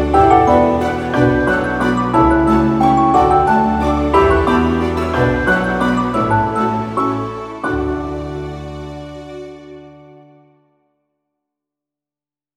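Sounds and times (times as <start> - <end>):
inspiring cinematic uplifting piano: 0.0 - 10.5.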